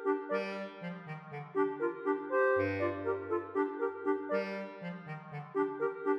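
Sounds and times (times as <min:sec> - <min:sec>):
bass: 0:00.2 - 0:06.0.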